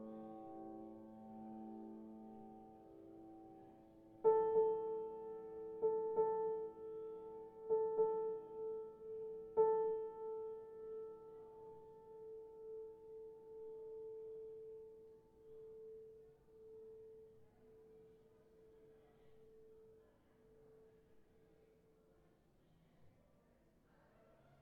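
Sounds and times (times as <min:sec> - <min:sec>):
piano improvisation: 0:00.0 - 0:15.7.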